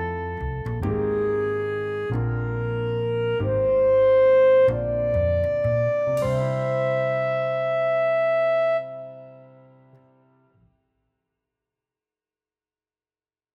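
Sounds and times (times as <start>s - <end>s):
rising melodic phrases: 0.0s - 10.2s.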